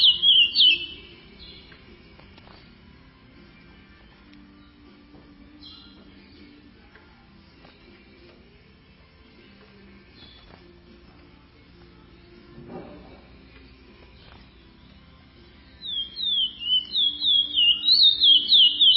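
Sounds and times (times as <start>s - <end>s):
chestnut-bellied seed finch song of rapid high whistles: 0.0s - 1.7s, 15.8s - 18.9s.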